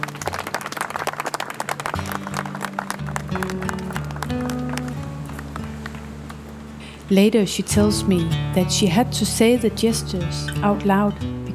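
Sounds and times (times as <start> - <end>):
audience clapping: 0.0 - 6.6
speech: 7.1 - 11.4.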